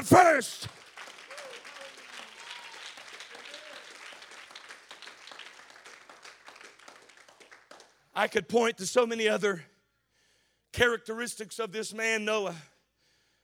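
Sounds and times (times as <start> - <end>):
speech: 0.0 - 0.8, 8.2 - 9.7, 10.8 - 12.7
audience hand clapping: 0.0 - 8.1.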